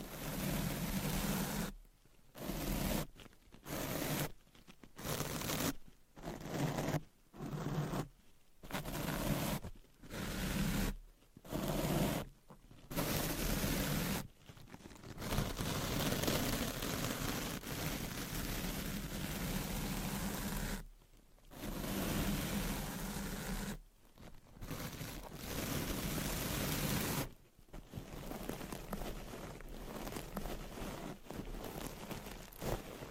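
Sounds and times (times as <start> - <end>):
scratching and rubbing: 0.0 - 33.0.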